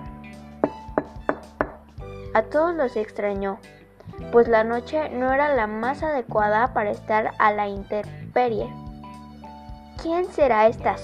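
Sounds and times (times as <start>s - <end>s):
firm hollow knocks on a door: 0.6s - 1.8s
speech: 2.4s - 8.8s, 10.0s - 11.0s.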